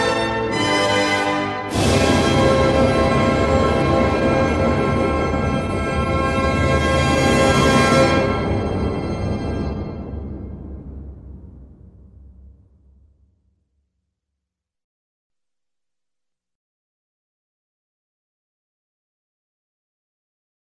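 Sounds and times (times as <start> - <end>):
fanfare: 0.0 - 9.1.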